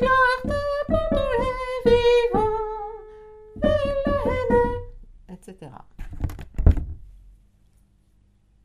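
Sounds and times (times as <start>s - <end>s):
soprano and tenor singing a carol: 0.0s - 5.0s.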